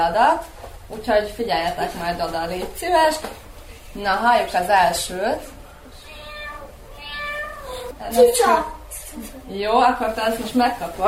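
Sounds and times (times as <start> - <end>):
speech: 0.0 - 5.6, 8.0 - 11.0
cat meowing: 6.0 - 8.0.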